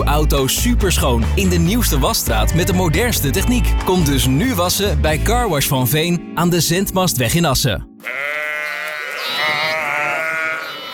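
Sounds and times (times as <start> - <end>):
speech: 0.1 - 8.4
sheep bleating: 8.0 - 10.9.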